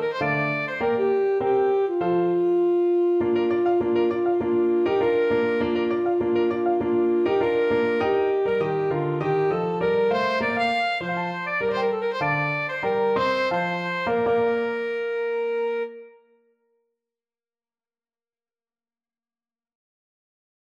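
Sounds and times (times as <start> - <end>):
alto saxophone playing a fantasy: 0.0 - 16.4.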